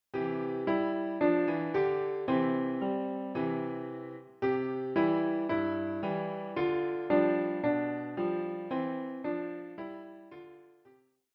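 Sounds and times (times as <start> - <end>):
piano: 0.1 - 11.0.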